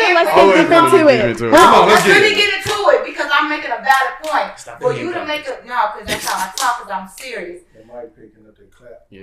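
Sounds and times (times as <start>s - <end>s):
speech: 0.2s - 2.7s, 3.5s - 9.2s
sharp hand clap picked up by the microphone: 1.5s - 2.9s, 4.2s - 4.5s, 6.1s - 7.3s.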